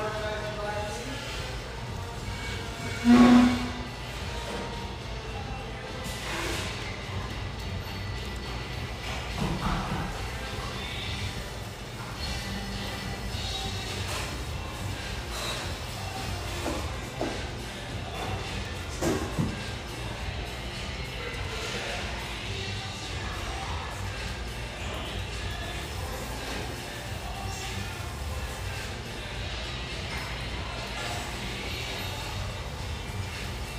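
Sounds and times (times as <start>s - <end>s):
steady hum in an espresso house near the Vancouver riverfront: 0.0s - 33.7s.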